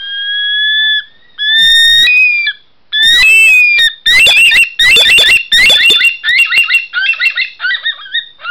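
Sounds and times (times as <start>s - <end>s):
bush thick-knee (bush stone-curlew) wailing calls at night: 0.0s - 8.4s.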